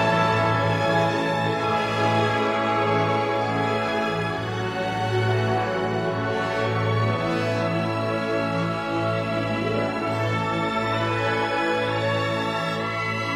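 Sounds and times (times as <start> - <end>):
symphony orchestra playing: 0.0 - 13.3.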